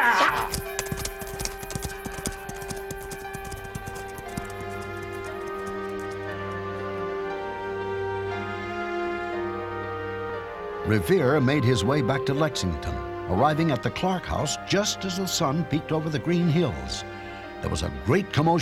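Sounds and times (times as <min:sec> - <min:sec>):
horse hooves clip-clopping away: 0:00.0 - 0:07.0
sustained musical backdrop: 0:00.4 - 0:18.6
speech: 0:10.9 - 0:18.6.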